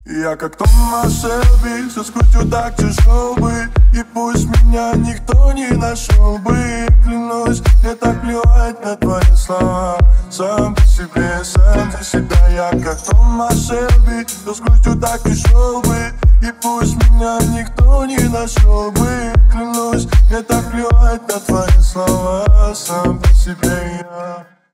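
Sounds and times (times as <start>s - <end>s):
remix music: 0.1s - 24.2s.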